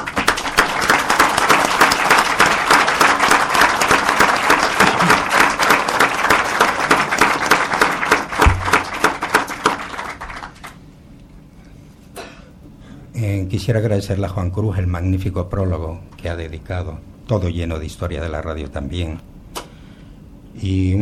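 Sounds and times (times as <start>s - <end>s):
audience applause: 0.0s - 10.8s
speech: 13.6s - 19.3s, 20.6s - 21.0s.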